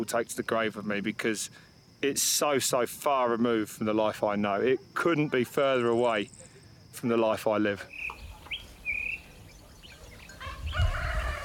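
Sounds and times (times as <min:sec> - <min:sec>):
speech: 0:00.0 - 0:08.2
rooster crowing: 0:10.3 - 0:11.4.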